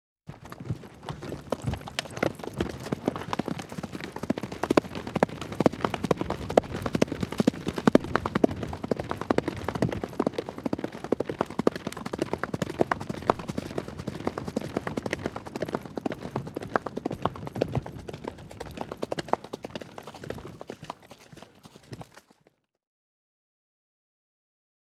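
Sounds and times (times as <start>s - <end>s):
horse galloping: 0.3s - 22.5s.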